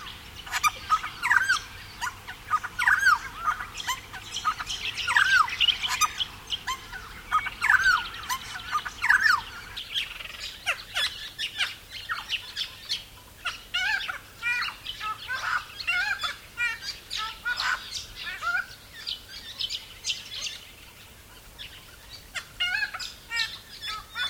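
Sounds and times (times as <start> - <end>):
silver-crowned friarbird calling: 0.0 - 24.2.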